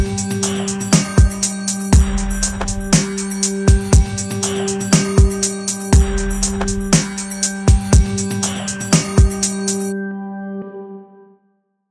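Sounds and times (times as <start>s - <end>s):
drum beat: 0.0s - 9.9s
sustained bass G drone: 1.8s - 7.4s.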